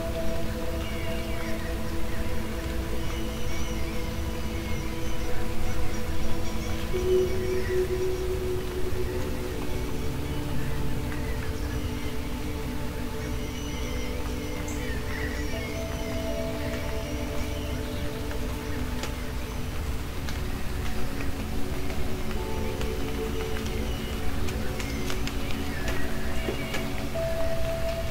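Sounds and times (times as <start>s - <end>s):
birds singing: 0.0s - 28.0s
soothing rain: 0.0s - 28.0s.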